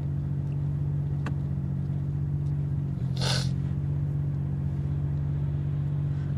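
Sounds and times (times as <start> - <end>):
busy highway traffic under an overpass: 0.8 - 6.3
vehicle passing whoosh: 3.0 - 3.6.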